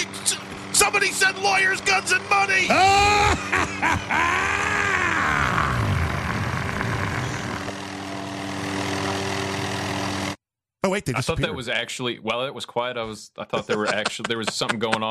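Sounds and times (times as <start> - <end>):
helicopters landing: 0.0 - 10.4
whining helicopter turbine tone: 0.0 - 10.4
speech: 0.8 - 4.7, 10.9 - 15.0
laughter: 2.5 - 5.7, 13.4 - 15.0.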